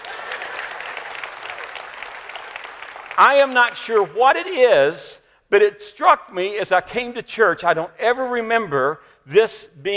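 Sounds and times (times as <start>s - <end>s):
audience clapping: 0.0s - 4.5s
speech: 3.2s - 9.9s.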